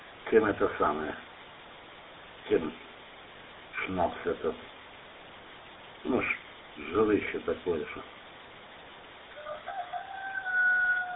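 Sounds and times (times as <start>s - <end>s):
speech: 0.3s - 1.3s, 2.5s - 2.9s, 3.8s - 4.7s, 6.0s - 8.2s
rooster crowing: 9.3s - 11.1s.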